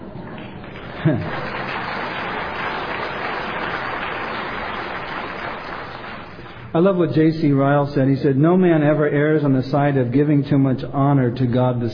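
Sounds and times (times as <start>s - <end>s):
scattered hand clapping: 0.2s - 6.7s
speech: 1.0s - 1.5s, 6.8s - 11.9s.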